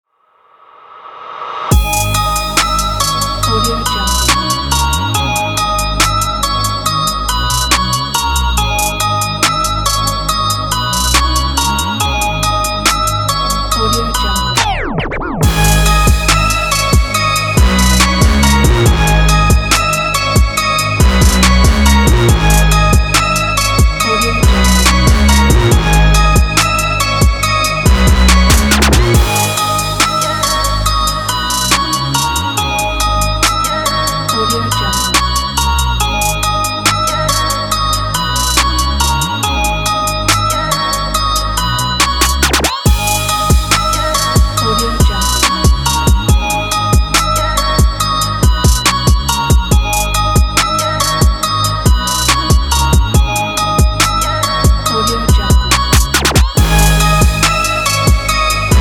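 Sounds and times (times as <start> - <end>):
trap hip hop beat: 1.7 - 58.8.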